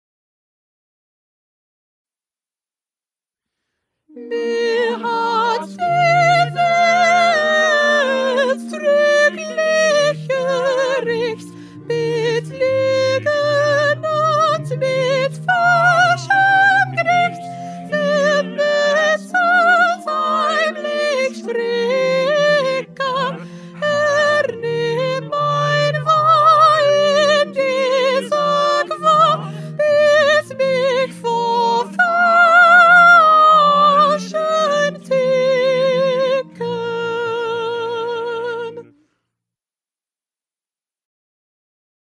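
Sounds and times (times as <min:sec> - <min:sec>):
soprano singing: 0:04.1 - 0:39.0.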